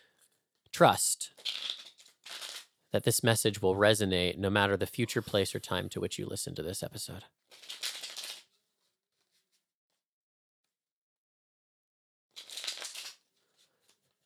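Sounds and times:
speech: 0.8 - 1.3, 2.9 - 7.4
tarot cards being shuffled: 1.3 - 2.8, 7.5 - 8.6, 12.4 - 14.1.

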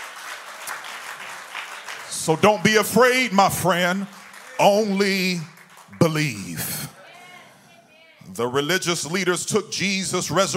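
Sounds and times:
audience clapping hands: 0.0 - 7.5
speech: 2.2 - 6.8, 8.3 - 10.5.

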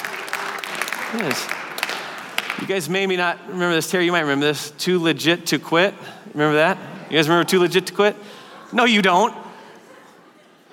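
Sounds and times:
audience clapping briefly: 0.0 - 2.8
speech: 1.1 - 1.6, 2.6 - 9.4.

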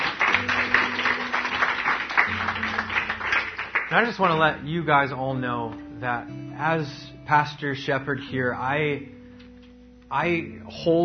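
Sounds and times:
audience clapping: 0.0 - 4.6
speech: 3.9 - 9.2, 10.1 - 11.0.

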